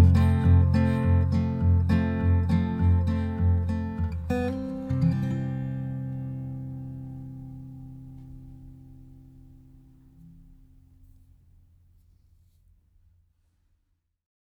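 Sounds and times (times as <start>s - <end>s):
acoustic music: 0.0s - 11.5s.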